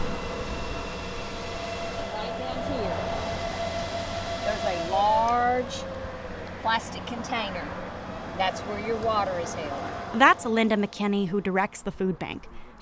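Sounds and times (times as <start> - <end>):
rising and falling whines: 0.0 - 12.1
road traffic: 0.0 - 12.8
water-producing panels humming: 0.0 - 12.8
speech: 5.6 - 6.0, 6.6 - 7.8, 8.4 - 12.8.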